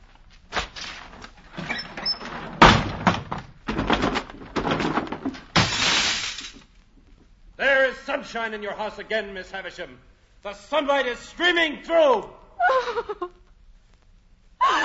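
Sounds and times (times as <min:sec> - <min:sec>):
heavy drapes ripped down from a window, tearing and crashing: 0:00.5 - 0:06.6
speech: 0:08.2 - 0:13.4.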